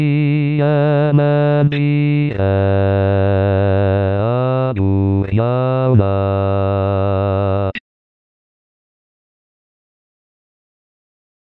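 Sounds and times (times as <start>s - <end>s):
bass voice singing a Basque farewell song: 0.0s - 7.8s.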